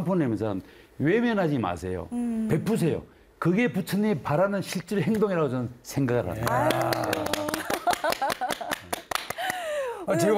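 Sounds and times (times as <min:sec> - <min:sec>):
speech: 0:00.0 - 0:07.3, 0:10.1 - 0:10.3
loud clapping: 0:06.4 - 0:09.7.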